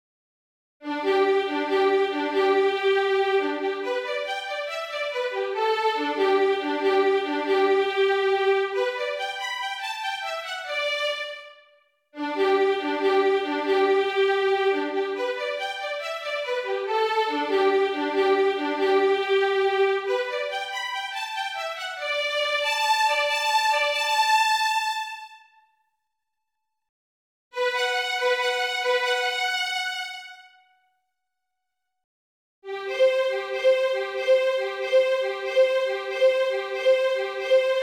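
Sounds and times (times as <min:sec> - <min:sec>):
violin hunting song: 0:00.8 - 0:11.6, 0:12.2 - 0:25.5, 0:27.6 - 0:30.7, 0:32.7 - 0:37.8.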